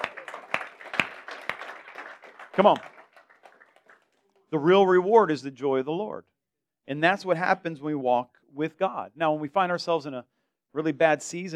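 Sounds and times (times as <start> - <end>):
audience clapping together once: 0.0 - 4.4
speech: 2.6 - 2.9, 4.5 - 6.3, 6.9 - 11.5.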